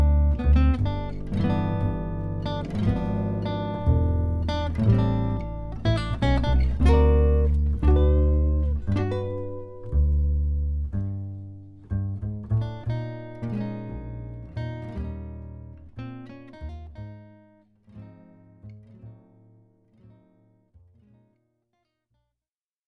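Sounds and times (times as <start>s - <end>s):
musical duo with bass: 0.0s - 17.3s.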